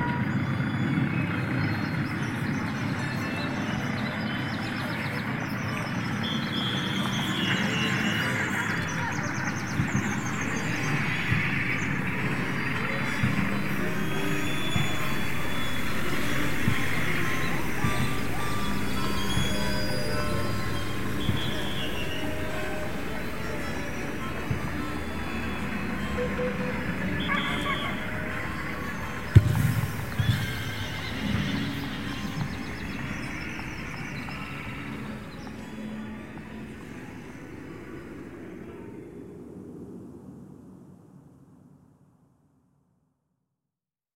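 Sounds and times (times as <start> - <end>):
big city ambience: 0.0 - 42.0.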